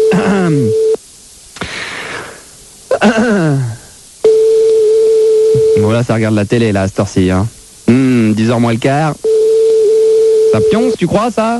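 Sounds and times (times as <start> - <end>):
telephone line tone: 0.0 - 1.0, 4.2 - 6.0, 9.2 - 11.2
hissy bursts: 1.5 - 4.2
speech: 6.0 - 9.3, 10.5 - 11.5.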